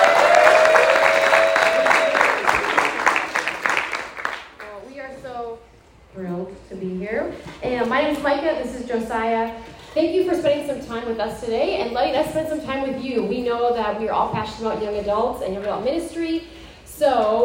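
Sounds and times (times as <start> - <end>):
audience applause welcoming two guests onto the stage: 0.0 - 4.7
speech: 8.0 - 17.4.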